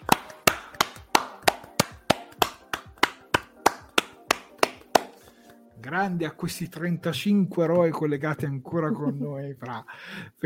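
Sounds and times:
hand claps: 0:00.0 - 0:05.2
speech: 0:05.8 - 0:10.4.

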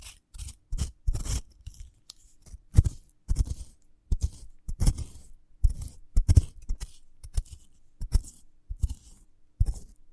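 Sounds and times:
cutting and scraping a sprouted coconut: 0:00.0 - 0:10.0.

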